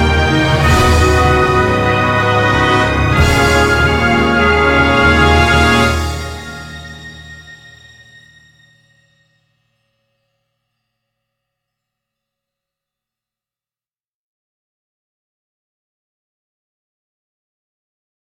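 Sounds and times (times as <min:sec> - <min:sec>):
mystery jingle: 0:00.1 - 0:09.9.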